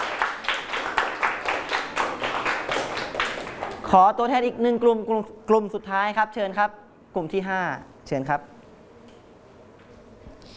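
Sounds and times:
classroom clapping: 0.0 - 4.0
speech: 3.9 - 8.5.

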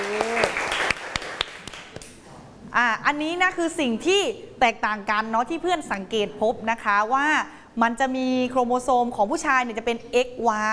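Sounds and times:
scattered hand claps from a class: 0.0 - 2.2
speech: 2.8 - 10.7.

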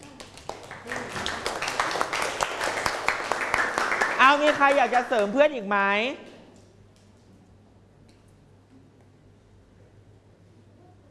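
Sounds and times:
class applauding: 0.0 - 5.4
speech: 4.3 - 6.3.

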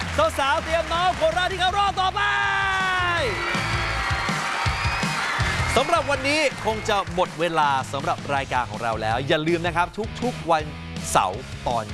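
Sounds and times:
crowd clapping and cheering: 0.0 - 9.3
speech: 0.2 - 2.6, 5.8 - 11.9.

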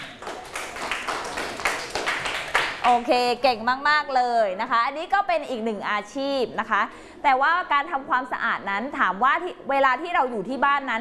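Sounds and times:
classroom students clapping for classmates: 0.0 - 2.9
speech: 2.9 - 10.9.

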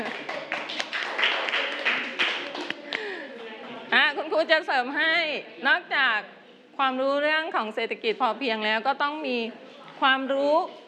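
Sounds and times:
classroom clapping: 0.0 - 3.1
speech: 4.4 - 10.8.

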